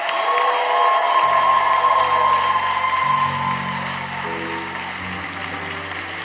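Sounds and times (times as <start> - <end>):
audience applauding: 0.0 - 6.2.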